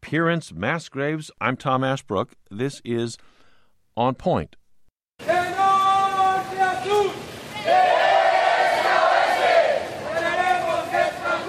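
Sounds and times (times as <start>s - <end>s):
speech: 0.1s - 3.4s, 4.0s - 4.6s
teachers and students protesting in Iguala, Mexico: 5.2s - 11.4s.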